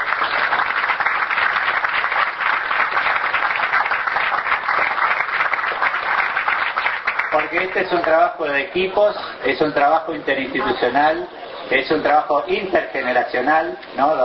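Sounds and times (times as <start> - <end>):
audience applause: 0.0 - 8.3
speech: 7.4 - 14.2.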